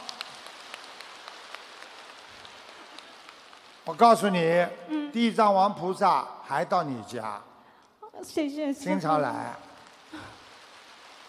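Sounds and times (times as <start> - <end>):
crowd applause: 0.0 - 4.4, 9.1 - 11.2
speech: 3.9 - 7.5, 8.2 - 10.3.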